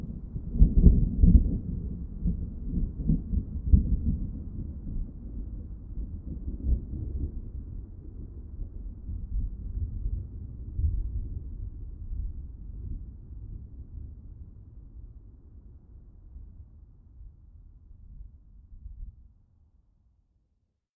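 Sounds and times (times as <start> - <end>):
thunder: 0.0 - 13.7.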